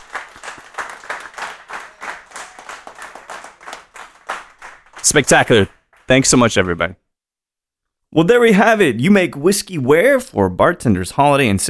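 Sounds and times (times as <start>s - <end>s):
audience applause for a panel: 0.0s - 6.8s
speech: 5.1s - 7.0s, 8.1s - 11.6s.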